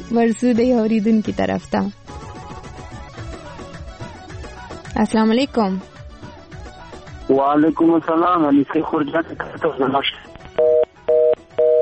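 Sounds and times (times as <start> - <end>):
speech: 0.1 - 2.1, 5.0 - 6.0, 7.3 - 10.7
telephone tone after a call is cut off: 10.6 - 11.8.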